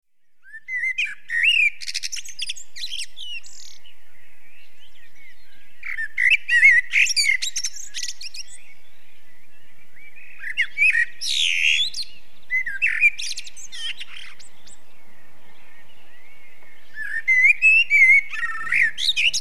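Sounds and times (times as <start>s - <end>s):
common blackbird singing: 0.3s - 19.4s.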